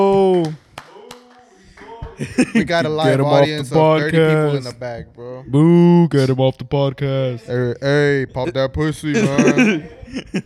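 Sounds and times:
audience clapping: 0:00.0 - 0:02.8
laughter: 0:02.2 - 0:04.7, 0:08.4 - 0:10.4
speech: 0:02.2 - 0:10.4.

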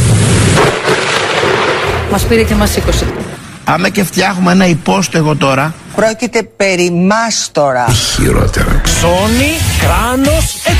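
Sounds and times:
thunder clap of a storm: 0:00.0 - 0:03.6
speech: 0:02.2 - 0:10.7.

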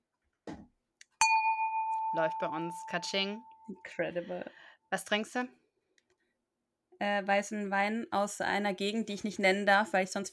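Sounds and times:
glasses clinking in a toast: 0:01.2 - 0:03.7
speech: 0:02.1 - 0:05.6, 0:07.0 - 0:10.3.

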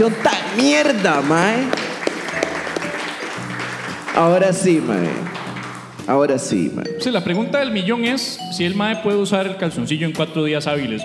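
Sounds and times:
speech: 0:00.0 - 0:01.8, 0:04.2 - 0:05.3, 0:06.1 - 0:11.0
audience applause: 0:00.0 - 0:06.1.

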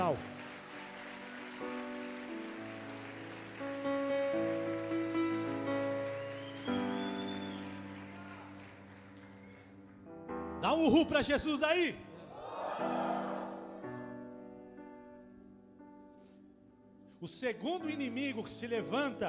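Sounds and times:
speech: 0:00.0 - 0:00.3, 0:10.8 - 0:12.0, 0:17.2 - 0:19.2
crowd clapping: 0:00.0 - 0:10.1
sustained keyboard-like musical chords: 0:00.0 - 0:17.0.

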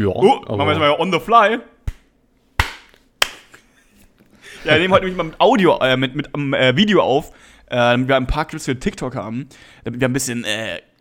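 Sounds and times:
speech: 0:00.0 - 0:01.7, 0:04.6 - 0:10.9
podcast hosts clapping: 0:01.9 - 0:03.6.

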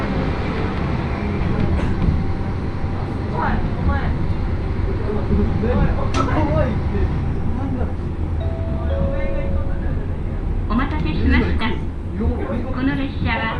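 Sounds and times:
one-car railbus engine and rail rumble on the Akechi Railway: 0:00.0 - 0:13.5
passengers chattering including women and children: 0:00.0 - 0:13.5.

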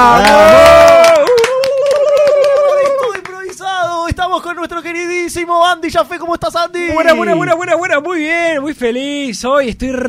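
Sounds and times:
loud applause: 0:00.0 - 0:03.9
speech: 0:04.6 - 0:10.0.

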